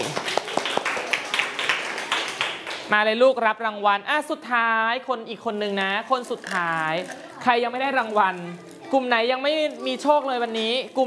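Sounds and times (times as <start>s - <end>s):
class of pupils clapping for a classmate in a Thai primary lesson: 0.0s - 2.9s
speech: 2.9s - 11.0s.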